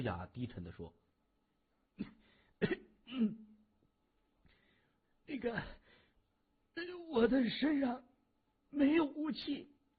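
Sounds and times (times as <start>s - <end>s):
speech: 0.0s - 1.0s, 2.0s - 3.5s, 5.3s - 5.8s, 6.8s - 8.1s, 8.7s - 9.7s
man clearing his throat: 2.0s - 3.6s.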